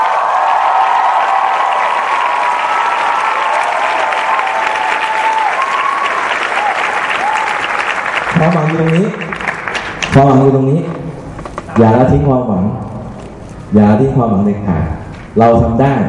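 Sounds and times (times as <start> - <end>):
cheers and whistles: 0.0 - 7.8
crowd applause: 0.0 - 10.1
speech: 8.4 - 9.4, 10.1 - 11.0, 11.8 - 12.9, 13.7 - 16.0.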